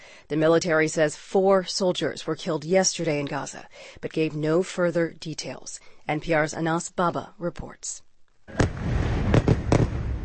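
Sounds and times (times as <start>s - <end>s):
speech: 0.3s - 8.8s
low rumbling: 8.5s - 10.2s
missile strike explosions from a bombing raid: 8.5s - 10.2s.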